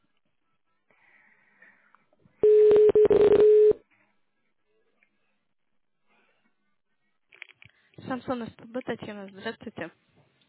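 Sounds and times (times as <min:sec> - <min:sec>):
touch-tone phone beeps dialing an extension: 0:02.4 - 0:03.8
speech: 0:08.2 - 0:10.2.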